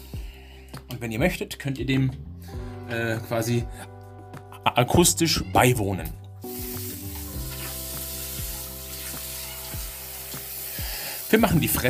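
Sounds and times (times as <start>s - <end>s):
speech: 0.9s - 4.0s, 4.8s - 6.2s, 11.3s - 11.8s
hot water filling a washbasin: 6.5s - 11.8s.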